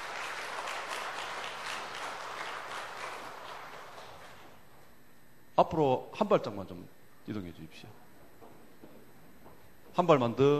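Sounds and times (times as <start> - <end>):
audience applause: 0.0 - 4.6
speech: 5.6 - 8.0, 10.0 - 10.5.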